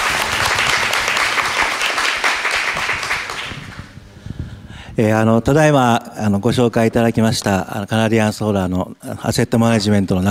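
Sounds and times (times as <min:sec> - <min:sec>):
audience applause: 0:00.0 - 0:03.9
speech: 0:05.0 - 0:10.2.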